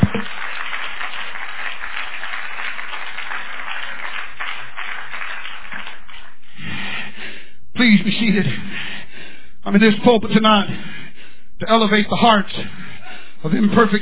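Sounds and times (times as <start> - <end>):
audience clapping hands: 0.0 - 7.4
speech: 8.0 - 8.7, 9.7 - 11.0, 11.6 - 12.8, 13.4 - 14.0.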